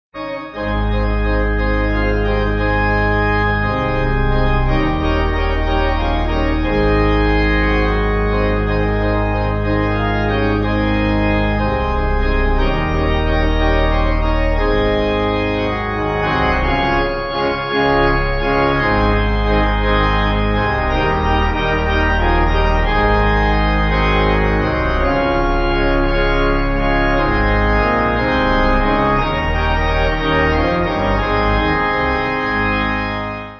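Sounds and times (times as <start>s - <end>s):
pipe organ: 0.2s - 33.5s.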